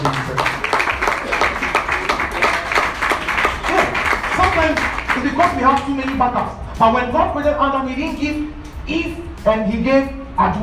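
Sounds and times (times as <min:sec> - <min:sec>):
audience clapping: 0:00.0 - 0:06.4
speech: 0:06.2 - 0:10.6.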